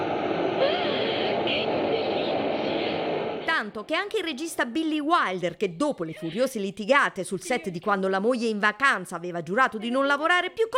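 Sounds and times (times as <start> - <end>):
subway wind from passing train: 0.0 - 3.5
speech: 3.7 - 10.7.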